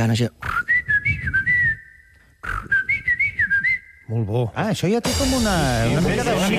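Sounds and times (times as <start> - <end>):
speech: 0.0 - 0.6, 4.1 - 6.5
whistled imitation of a blackbird's song: 0.4 - 4.2.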